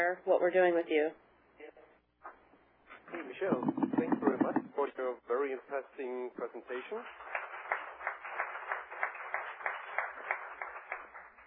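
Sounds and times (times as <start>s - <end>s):
speech: 0.0s - 1.8s, 3.1s - 7.4s
audience applause: 7.1s - 11.4s.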